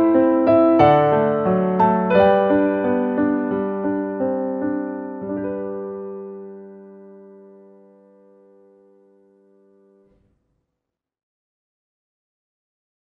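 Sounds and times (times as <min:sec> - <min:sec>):
piano: 0:00.0 - 0:10.4.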